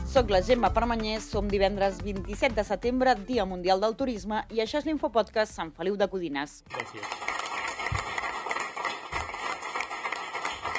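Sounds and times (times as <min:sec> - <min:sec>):
speech: 0:00.1 - 0:07.3
crowd applause in a council chamber: 0:06.7 - 0:10.7.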